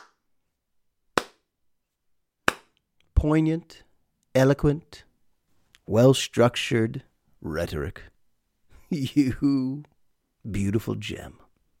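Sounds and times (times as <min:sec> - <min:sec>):
slow hand claps by one person: 0:00.0 - 0:00.2, 0:01.2 - 0:01.5, 0:02.4 - 0:02.8
speech: 0:03.2 - 0:05.1, 0:05.9 - 0:08.1, 0:08.9 - 0:11.4.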